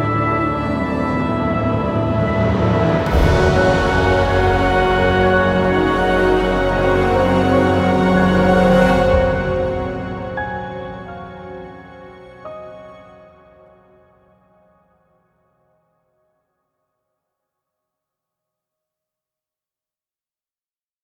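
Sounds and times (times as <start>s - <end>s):
ambient music: 0.0s - 15.4s.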